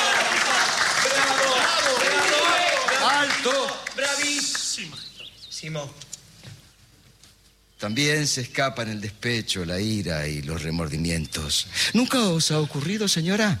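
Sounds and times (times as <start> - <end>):
audience applause: 0.0 - 4.9
speech: 4.2 - 6.6, 7.8 - 13.5.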